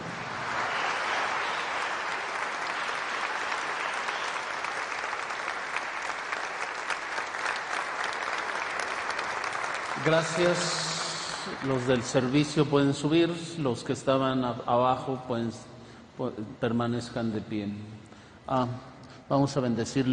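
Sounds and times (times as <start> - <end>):
audience applause: 0.0 - 12.6
speech: 10.0 - 20.1.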